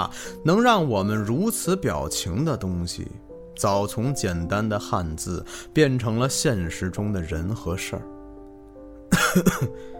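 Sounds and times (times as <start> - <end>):
speech: 0.0 - 8.2, 9.3 - 9.9
person coughing: 9.1 - 9.9.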